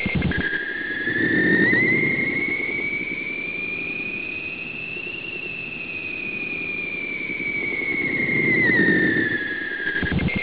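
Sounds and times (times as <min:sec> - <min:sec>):
alien noise: 0:00.0 - 0:10.4.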